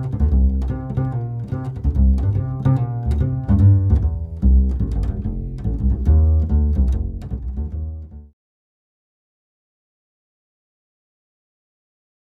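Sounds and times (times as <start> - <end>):
acoustic bass: 0.0 - 8.4.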